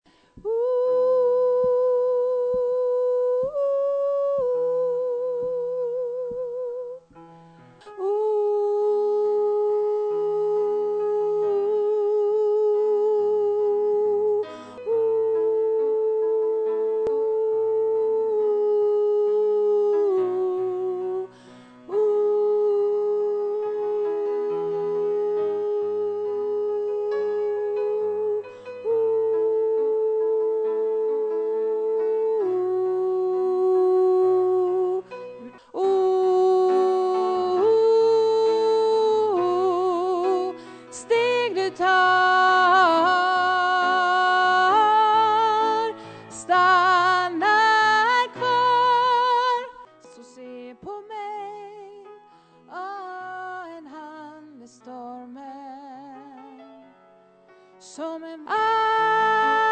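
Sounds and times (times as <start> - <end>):
soprano voice: 0.3 - 7.2, 7.8 - 57.0, 57.8 - 59.7.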